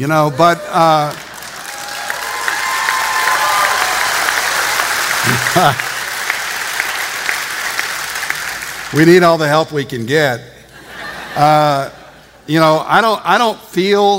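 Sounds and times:
speech: 0.0 - 1.2, 5.2 - 5.9, 8.9 - 10.6, 11.4 - 14.1
audience applause: 0.4 - 9.1
laughter: 10.6 - 12.5.

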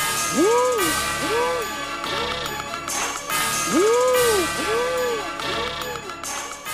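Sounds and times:
mid-2000s trap song: 0.2 - 2.4, 3.5 - 6.2.

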